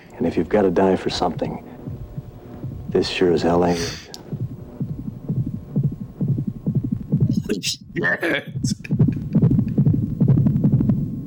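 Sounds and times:
throbbing heartbeat sound effect: 0:00.0 - 0:11.2
speech: 0:00.2 - 0:01.7, 0:02.9 - 0:04.1, 0:07.6 - 0:08.9.

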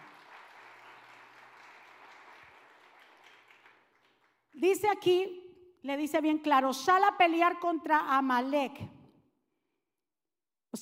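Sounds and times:
loud audience applause: 0:00.0 - 0:04.4
speech: 0:04.6 - 0:08.9.

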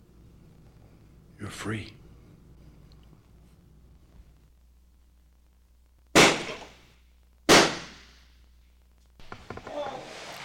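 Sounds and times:
speech: 0:01.4 - 0:02.0
gunshots in a police shooting film scene: 0:06.1 - 0:06.8, 0:07.5 - 0:08.2.

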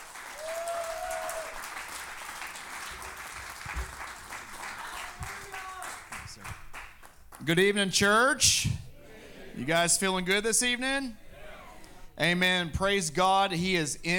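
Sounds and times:
audience clapping: 0:00.0 - 0:07.7
speech: 0:07.4 - 0:08.7, 0:09.6 - 0:11.2, 0:12.2 - 0:14.1.

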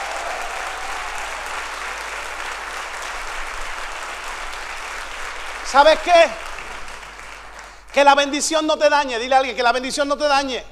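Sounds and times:
audience applause: 0:00.0 - 0:08.1
speech: 0:05.7 - 0:06.4, 0:07.9 - 0:10.6.

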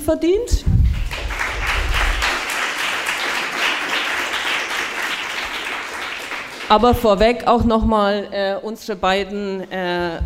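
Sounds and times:
speech: 0:00.1 - 0:00.8, 0:06.7 - 0:10.2
audience applause: 0:00.9 - 0:06.8.

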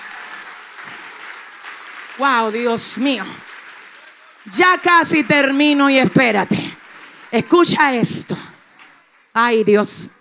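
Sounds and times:
audience applauding: 0:00.0 - 0:10.1
speech: 0:02.2 - 0:03.5, 0:04.4 - 0:06.7, 0:07.3 - 0:08.5, 0:09.4 - 0:10.1.

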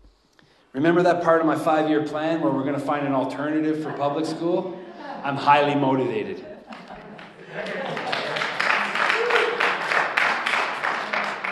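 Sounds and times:
speech: 0:00.7 - 0:06.5
laughter: 0:02.4 - 0:11.4
audience clapping: 0:06.7 - 0:11.4.

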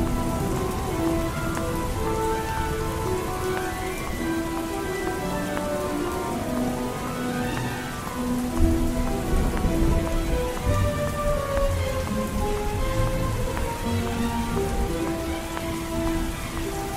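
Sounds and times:
slow sustained music notes: 0:00.0 - 0:16.9
steady dense rain: 0:00.0 - 0:16.9.

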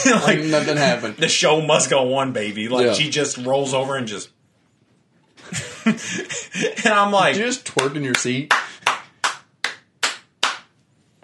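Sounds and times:
laughter: 0:00.0 - 0:01.4, 0:05.4 - 0:07.2
speech: 0:00.1 - 0:04.4, 0:05.4 - 0:08.7
single person clapping: 0:07.8 - 0:10.8.

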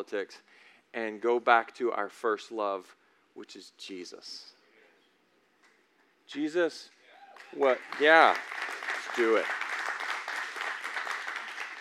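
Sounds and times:
speech: 0:00.0 - 0:04.6, 0:06.3 - 0:08.6, 0:09.2 - 0:09.6
crowd applause: 0:07.4 - 0:11.7.

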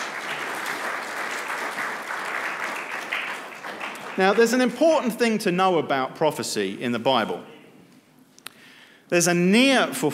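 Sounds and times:
audience applause: 0:00.0 - 0:05.1
speech: 0:04.2 - 0:07.5, 0:09.1 - 0:10.1.

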